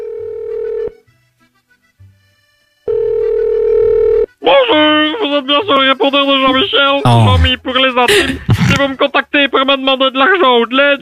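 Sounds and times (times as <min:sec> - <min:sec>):
telephone ringback tone from a call to a mobile phone: 0:00.0 - 0:01.0, 0:02.9 - 0:04.3
speech: 0:05.3 - 0:10.9.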